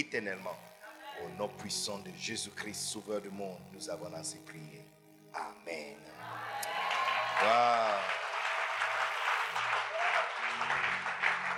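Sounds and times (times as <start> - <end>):
speech: 0.0 - 6.8, 7.4 - 8.2
audience applauding: 6.2 - 11.5.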